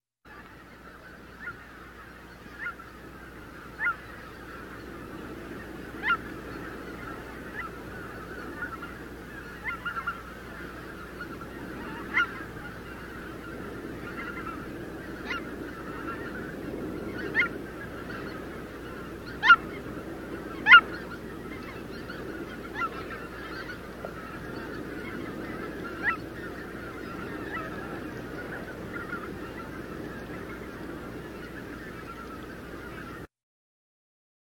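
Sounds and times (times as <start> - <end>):
geese honking: 0.3 - 33.3
swans calling: 0.3 - 33.3.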